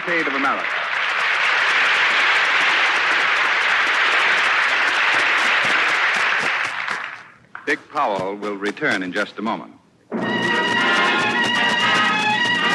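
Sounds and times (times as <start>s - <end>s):
theater audience applause: 0.0s - 7.4s, 10.2s - 12.7s
speech: 0.1s - 0.9s, 7.7s - 9.8s.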